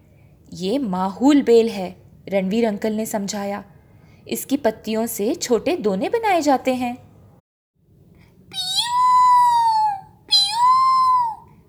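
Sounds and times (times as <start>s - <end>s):
speech: 0.5s - 7.0s
peacock call: 8.6s - 11.4s.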